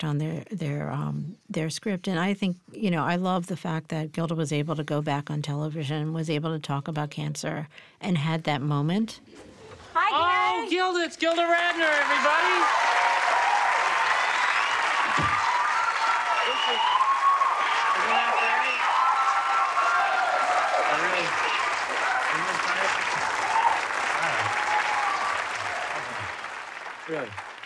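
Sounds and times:
speech: 0.0 - 9.5, 10.1 - 13.0, 27.1 - 27.4
studio audience applause: 10.7 - 27.6
scattered cheers and whoops: 11.6 - 26.5.

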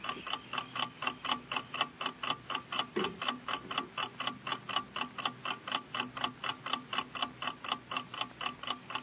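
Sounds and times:
clock ticking: 0.0 - 9.0.

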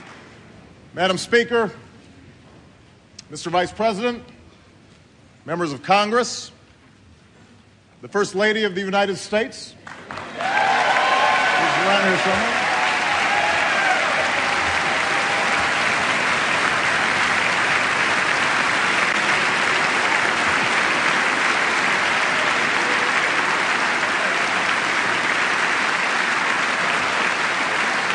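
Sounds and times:
speech: 1.0 - 1.8, 3.3 - 4.4, 5.5 - 6.6, 8.0 - 10.6, 11.8 - 12.6
sustained audience applause for First Lady Michelle Obama: 9.9 - 28.1.

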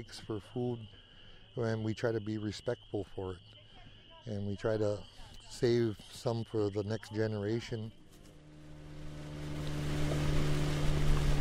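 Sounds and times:
speech: 0.0 - 1.0, 1.6 - 3.6, 4.2 - 8.0
boat motor slowing on lake: 8.0 - 11.4.

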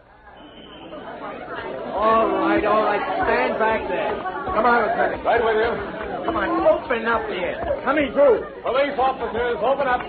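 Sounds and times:
crowd of onlookers chattering: 0.0 - 10.0
speech: 2.6 - 10.0.

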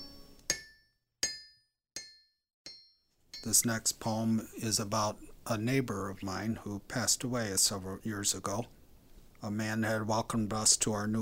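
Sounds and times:
hammer striking steel on anvil: 0.0 - 3.7
speech: 3.4 - 8.8, 9.4 - 11.2.

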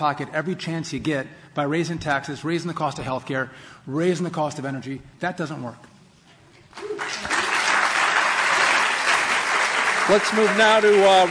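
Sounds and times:
speech: 0.0 - 5.9, 10.1 - 11.2
audience applause: 6.8 - 11.2.

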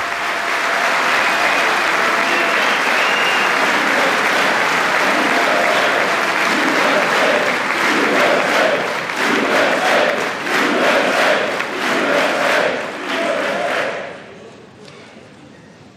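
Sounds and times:
applause from a large crowd in a large hall: 0.0 - 14.1
rhythmic clapping: 0.0 - 14.1.

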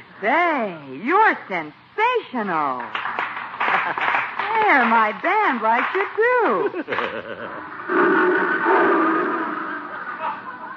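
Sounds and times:
speech: 0.2 - 3.1, 3.9 - 9.1
laughter: 3.6 - 4.5, 6.3 - 7.8, 9.7 - 10.7
lion roaring: 7.6 - 10.6.

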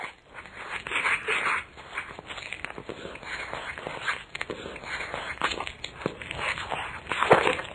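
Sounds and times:
person munching on an apple: 0.0 - 7.7.

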